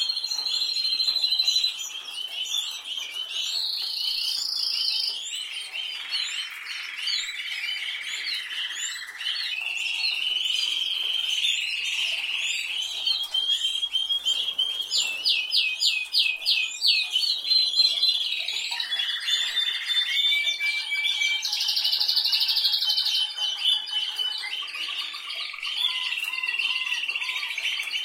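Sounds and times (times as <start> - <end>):
canary singing: 0.0 - 28.0.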